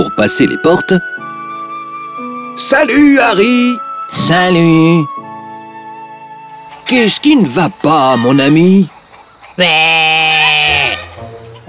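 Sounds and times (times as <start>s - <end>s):
speech: 0.0s - 1.2s, 2.6s - 5.2s, 6.9s - 9.0s, 9.6s - 10.4s
sheep bleating: 9.6s - 11.2s.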